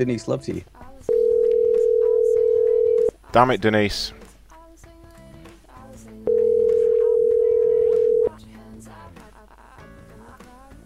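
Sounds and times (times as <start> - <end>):
speech: 0.0 - 0.8, 3.3 - 4.2
telephone ring-back tone with no answer: 1.1 - 3.1, 6.3 - 8.3.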